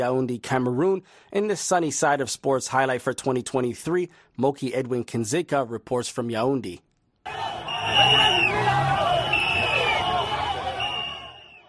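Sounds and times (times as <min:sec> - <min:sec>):
speech: 0:00.0 - 0:08.4
fans applauding at volleyball championship: 0:07.3 - 0:11.6.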